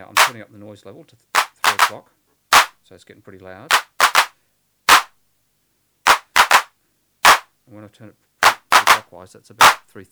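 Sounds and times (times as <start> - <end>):
harsh hand claps: 0.0 - 0.4, 1.4 - 2.7, 3.7 - 4.3, 4.9 - 5.1, 6.1 - 7.4, 8.4 - 9.0, 9.6 - 9.8
speech: 0.0 - 2.2, 2.8 - 3.9, 7.7 - 8.3, 8.9 - 10.1.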